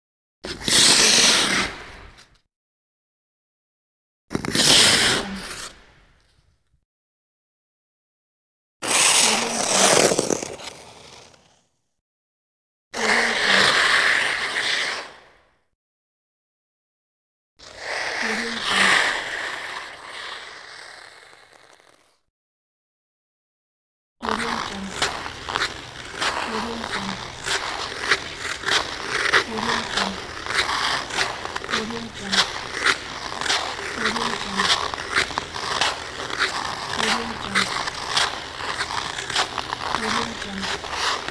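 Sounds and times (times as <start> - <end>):
ice skates on ice: 0.5 - 2.2, 4.3 - 5.8, 8.8 - 11.7, 13.0 - 15.4, 17.6 - 22.2, 24.2 - 41.2.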